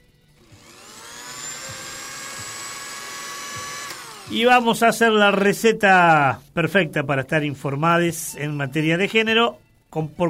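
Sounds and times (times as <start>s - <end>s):
blender running: 0.3s - 4.8s
speech: 4.3s - 10.2s.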